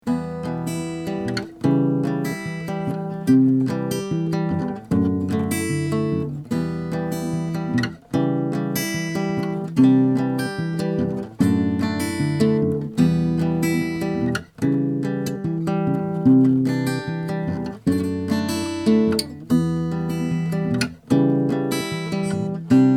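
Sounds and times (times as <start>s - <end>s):
guitar: 0.0s - 22.9s.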